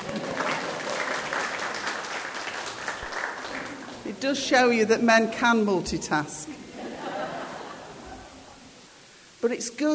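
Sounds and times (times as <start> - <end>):
audience applause: 0.0 - 4.0
speech: 4.2 - 6.6, 9.6 - 9.9
laughter: 6.5 - 8.6.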